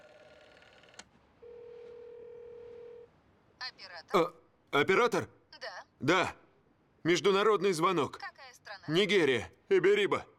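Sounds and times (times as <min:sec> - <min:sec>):
dialing a wall telephone: 0:00.0 - 0:03.1
speech: 0:03.7 - 0:05.4, 0:06.0 - 0:06.4, 0:07.0 - 0:08.3, 0:08.9 - 0:10.3.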